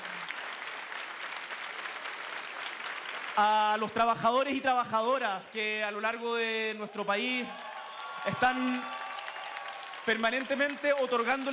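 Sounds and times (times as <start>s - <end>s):
audience applause: 0.0s - 3.9s, 7.0s - 11.5s
speech: 3.4s - 9.0s, 10.1s - 11.5s.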